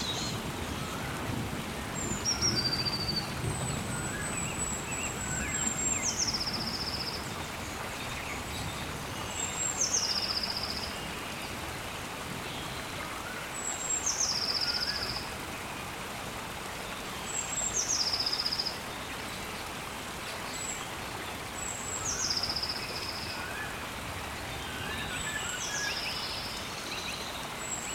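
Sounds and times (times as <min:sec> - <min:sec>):
rainforest ambience: 0:00.0 - 0:27.9.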